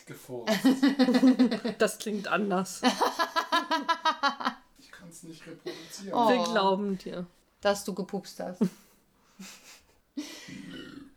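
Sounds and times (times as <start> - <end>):
speech: 0.0 - 4.4, 5.1 - 8.8, 9.4 - 10.6
laughter: 0.5 - 1.8, 2.8 - 4.6
throaty burps: 10.5 - 11.1.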